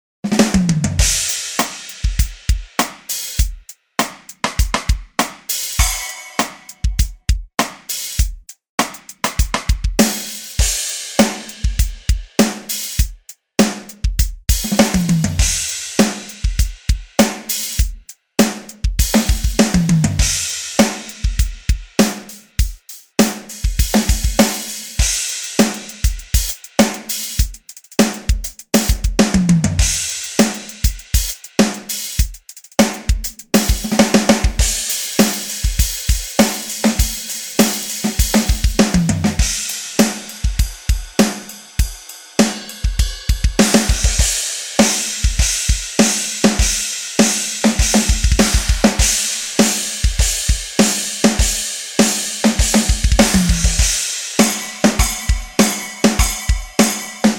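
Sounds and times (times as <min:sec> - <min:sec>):
drum kit solo: 0:00.2 - 0:57.3.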